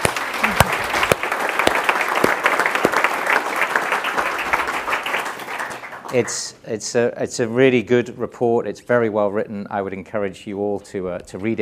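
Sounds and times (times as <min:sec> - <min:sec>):
audience applause: 0:00.0 - 0:06.4
speech: 0:06.1 - 0:11.5.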